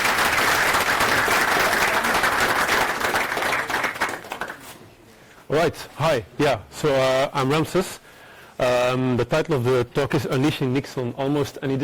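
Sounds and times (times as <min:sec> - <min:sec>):
audience applause: 0:00.0 - 0:04.6
speech: 0:05.5 - 0:08.0, 0:08.6 - 0:11.8.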